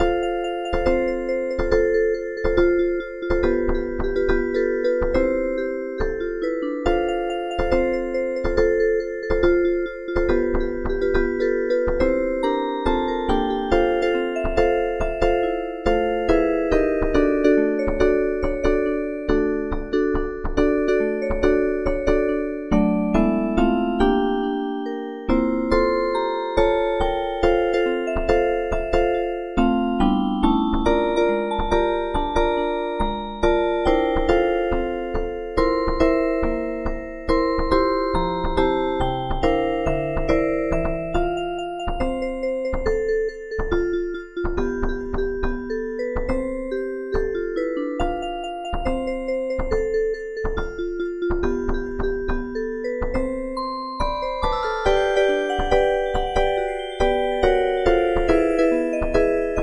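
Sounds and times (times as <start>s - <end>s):
music box: 0.0s - 59.6s.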